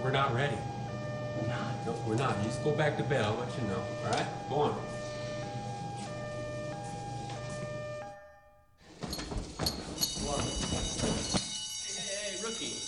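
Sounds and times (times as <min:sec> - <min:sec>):
fire station alarm siren: 0:00.0 - 0:08.7, 0:10.0 - 0:12.8
ringing tones: 0:00.0 - 0:12.8
speech: 0:00.1 - 0:00.7, 0:01.4 - 0:05.0
clattering commotion: 0:08.8 - 0:11.5.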